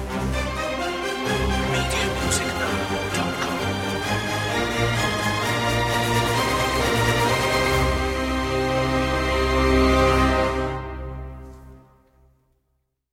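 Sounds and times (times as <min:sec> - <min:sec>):
strings: 0:00.0 - 0:11.6
brass: 0:00.0 - 0:12.0.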